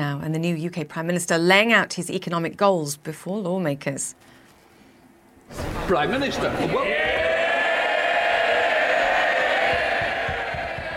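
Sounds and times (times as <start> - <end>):
speech: 0.0 - 4.3, 5.5 - 7.1
MPs cheering in parliament chamber: 5.6 - 10.9.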